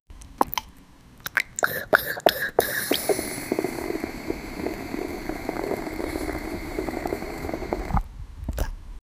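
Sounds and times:
woman drinking orange juice: 1.3s - 8.0s.

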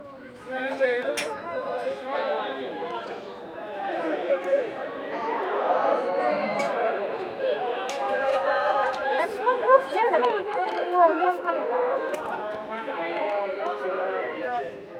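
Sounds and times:
20 people chatting at a wedding: 0.0s - 14.9s.

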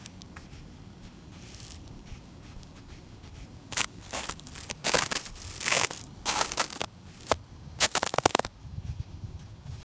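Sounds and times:
crisp crunching of ice: 3.7s - 8.5s.

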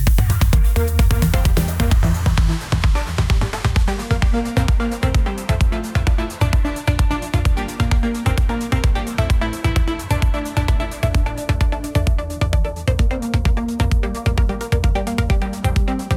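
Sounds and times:
inspiring finance video background music: 0.1s - 16.1s.

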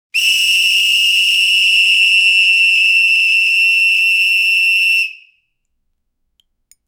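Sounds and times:
short lifeguard whistle blasts: 0.2s - 5.5s.

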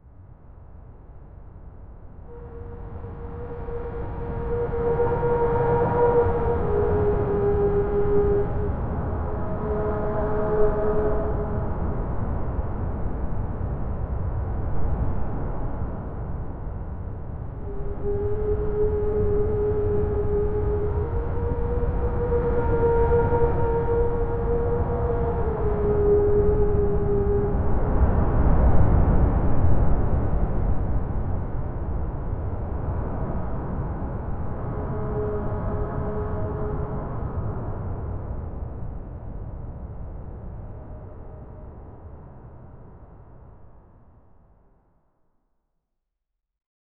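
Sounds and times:
howling wind: 0.0s - 44.9s.

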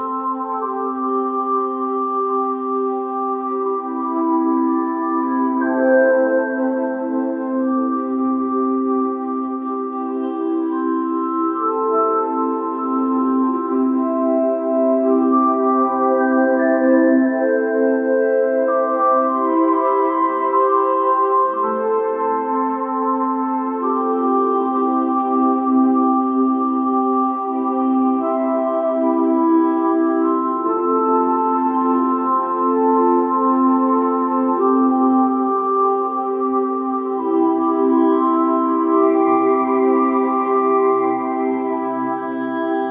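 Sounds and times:
lullaby synth pad: 0.0s - 42.9s.

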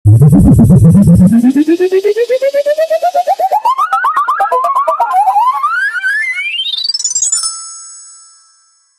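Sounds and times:
2D cartoon animation intro sound: 0.1s - 6.6s.

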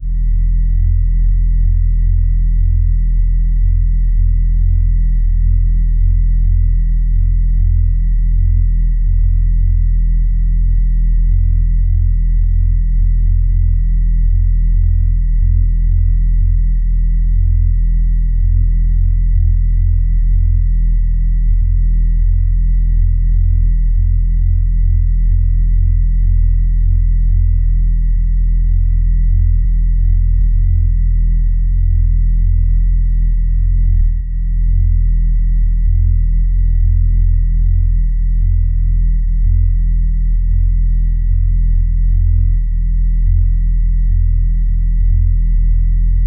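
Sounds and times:
discreet electronic motor: 0.0s - 46.2s.

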